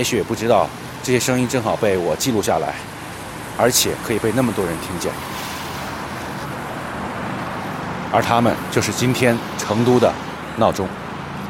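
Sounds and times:
speech: 0.0 - 3.0, 3.6 - 5.5, 8.1 - 11.0
street traffic at a zebra crossing: 0.0 - 11.4.

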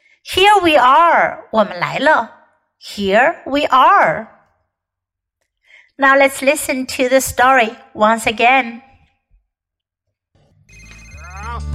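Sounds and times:
speech: 0.2 - 4.4, 6.0 - 8.9
telephone ringing with a bright electronic tone: 10.7 - 11.7.

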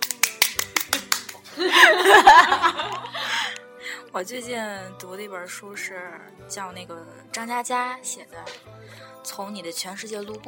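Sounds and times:
applause: 0.0 - 1.5
laughter: 1.4 - 3.6
speech: 4.2 - 10.4.

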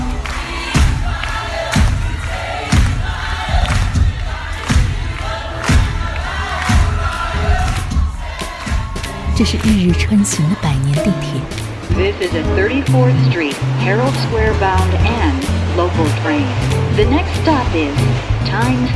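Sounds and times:
thunderous Broadway theatre applause: 0.0 - 18.9
speech: 9.4 - 18.9.

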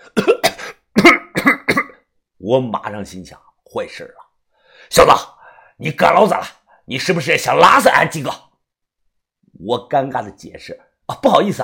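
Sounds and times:
people coughing after eating spicy food: 0.1 - 2.0
speech: 2.4 - 4.2, 4.8 - 8.5, 9.6 - 11.6.

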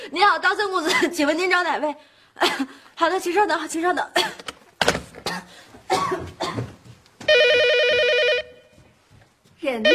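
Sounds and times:
speech: 0.1 - 4.4, 9.7 - 9.9
telephone ringing: 7.3 - 8.8.

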